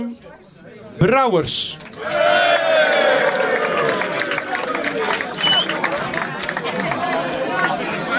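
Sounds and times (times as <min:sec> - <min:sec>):
speech: 0:00.0 - 0:02.9
audience applause: 0:01.8 - 0:08.0.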